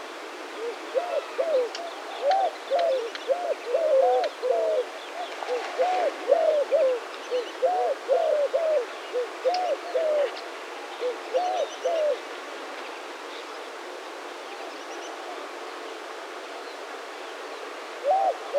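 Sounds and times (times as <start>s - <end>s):
Burmese collared dove Streptopelia xanthocycla calling: 0.6s - 12.2s, 18.0s - 18.5s.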